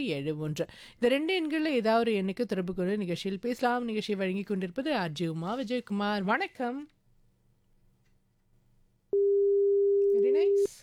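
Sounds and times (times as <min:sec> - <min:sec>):
speech: 0:00.0 - 0:07.0, 0:10.3 - 0:10.8
telephone beep tone: 0:09.2 - 0:10.7.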